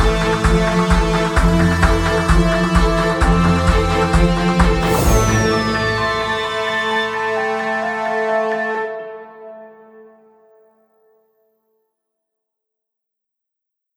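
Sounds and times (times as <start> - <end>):
news bed music: 0.0 - 10.0.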